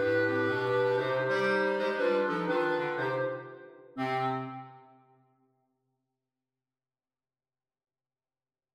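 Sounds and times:
clarinet quartet playing: 0.0 - 5.0.

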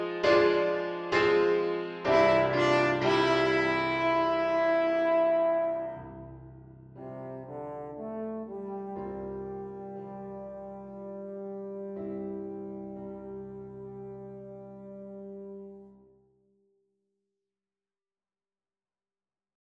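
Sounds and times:
french horn: 0.0 - 6.4, 7.0 - 16.2.

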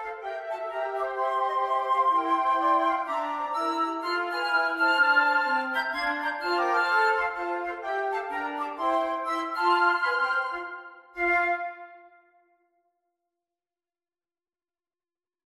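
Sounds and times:
flute quartet playing a jazz carol: 0.0 - 12.0.

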